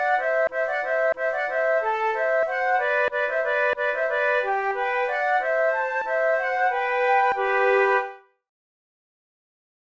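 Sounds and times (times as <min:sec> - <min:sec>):
march duet on flute: 0:00.0 - 0:08.3.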